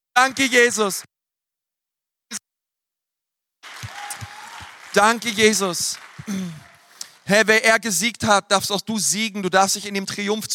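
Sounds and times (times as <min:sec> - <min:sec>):
speech: 0:00.2 - 0:01.1, 0:05.0 - 0:06.7, 0:07.3 - 0:10.5
audience applause: 0:03.6 - 0:07.4
clap-like snap: 0:03.7 - 0:07.2.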